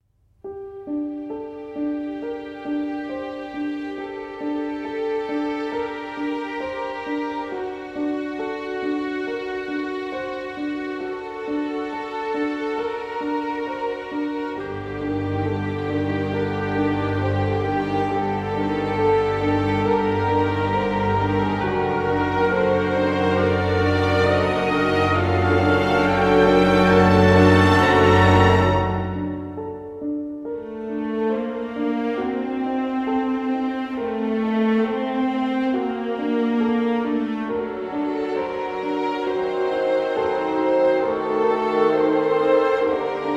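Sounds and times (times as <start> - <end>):
event background music: 0.6 - 43.3.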